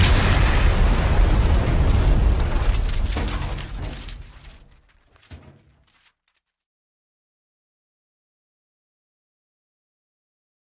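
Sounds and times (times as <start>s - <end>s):
bomb blast explosion sound effect: 0.0s - 4.8s.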